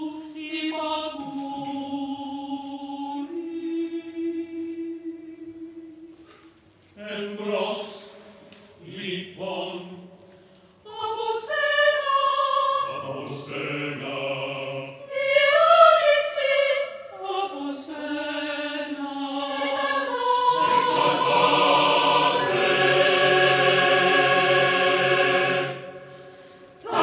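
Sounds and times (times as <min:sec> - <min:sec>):
choir singing: 0:00.0 - 0:04.3, 0:10.9 - 0:27.0.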